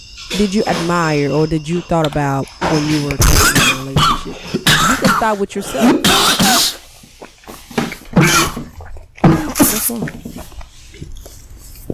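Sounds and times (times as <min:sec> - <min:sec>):
speech: 0:00.3 - 0:04.4, 0:05.2 - 0:06.8, 0:09.9 - 0:10.2
harsh coughing: 0:03.2 - 0:06.9, 0:08.1 - 0:09.9.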